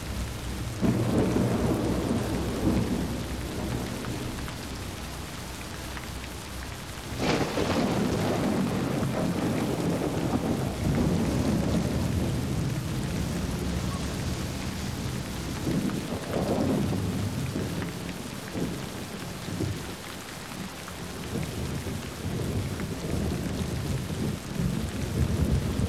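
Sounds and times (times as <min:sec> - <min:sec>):
thunder in thunderstorms: 0:00.0 - 0:06.0, 0:07.0 - 0:20.0, 0:21.1 - 0:25.8
rain: 0:00.0 - 0:25.8.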